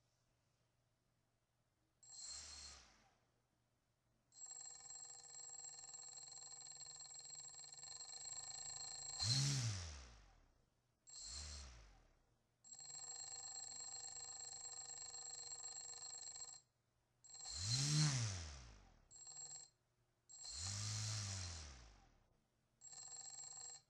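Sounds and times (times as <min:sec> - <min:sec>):
motor running: 0:09.2 - 0:10.1, 0:17.4 - 0:18.8, 0:20.5 - 0:22.0.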